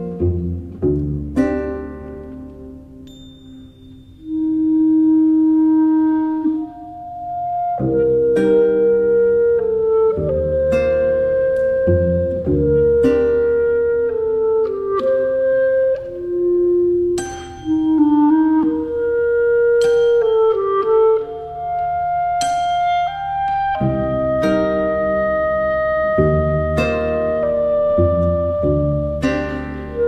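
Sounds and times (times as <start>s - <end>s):
cello: 0.0s - 30.0s
clarinet: 0.0s - 30.0s
lute: 0.0s - 30.0s
percussion: 2.3s - 4.6s, 17.2s - 18.8s, 19.6s - 24.7s.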